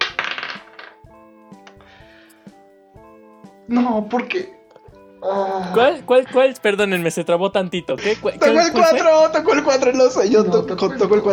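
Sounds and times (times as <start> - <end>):
die rattling: 0.0 - 1.1
speech: 3.7 - 4.6, 5.2 - 11.3.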